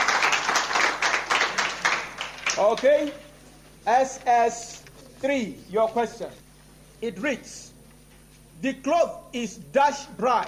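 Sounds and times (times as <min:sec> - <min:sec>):
group clapping rhythmically at a quiz: 0:00.0 - 0:03.4
speech: 0:02.6 - 0:06.4, 0:07.0 - 0:07.7, 0:08.6 - 0:10.4.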